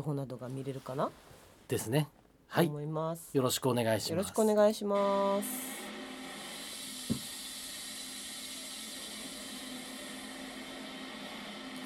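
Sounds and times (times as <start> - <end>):
speech: 0.0 - 5.8
giant robot sound effect with steady mechanical hiss: 5.4 - 11.8
heavy thump: 7.1 - 7.3.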